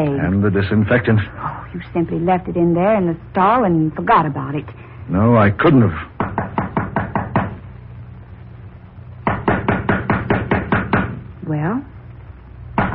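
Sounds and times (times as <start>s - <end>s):
speech: 0.0s - 6.4s
hard knocking on a door: 6.2s - 7.6s, 9.2s - 11.2s, 12.8s - 12.9s.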